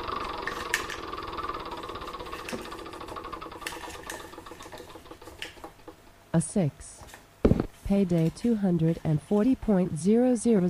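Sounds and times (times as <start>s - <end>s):
spinning wheel clicking in a money-and-payday video game: 0.0s - 6.0s
buzzing hum: 0.0s - 10.6s
speech: 6.4s - 7.0s, 7.9s - 10.6s.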